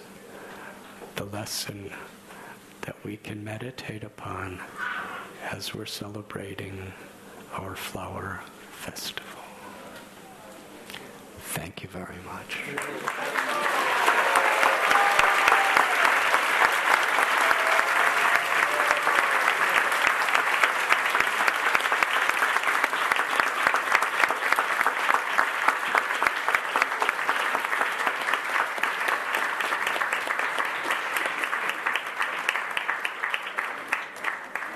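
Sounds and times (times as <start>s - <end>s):
speech: 1.2s - 2.2s, 3.0s - 9.2s, 11.6s - 13.6s
audience applause: 12.6s - 34.7s.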